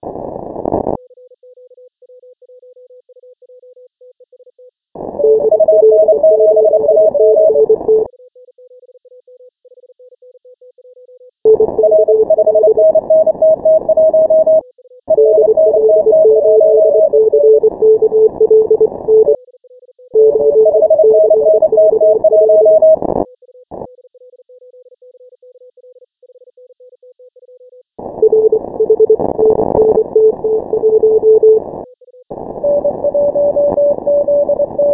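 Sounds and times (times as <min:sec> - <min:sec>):
morse code beeps: 0:05.2 - 0:08.1, 0:11.5 - 0:19.4, 0:20.2 - 0:23.0, 0:28.2 - 0:31.6, 0:32.6 - 0:34.9.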